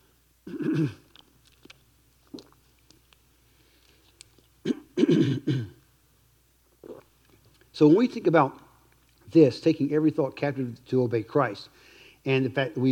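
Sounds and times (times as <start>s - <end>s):
speech: 0.7s - 1.0s, 7.8s - 8.6s, 9.3s - 12.9s
sipping and swallowing a drink: 0.8s - 4.6s, 6.8s - 7.7s.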